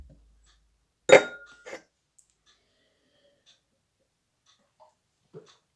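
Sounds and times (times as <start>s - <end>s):
kitchen sound effects: 1.1s - 1.8s.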